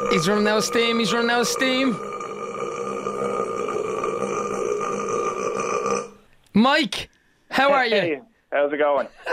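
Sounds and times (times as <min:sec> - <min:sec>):
long belch: 0:00.0 - 0:06.2
speech: 0:00.1 - 0:02.1, 0:06.6 - 0:09.3.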